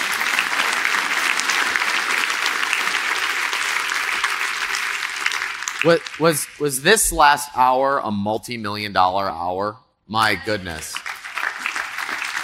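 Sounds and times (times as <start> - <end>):
audience clapping: 0.0 - 7.4, 10.2 - 12.4
speech: 5.8 - 11.1.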